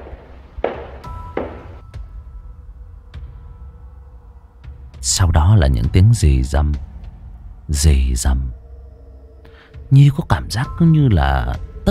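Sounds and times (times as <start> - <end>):
footsteps of more than one person: 0.0 - 1.8
speech: 5.0 - 6.9, 7.7 - 8.6, 9.9 - 11.8.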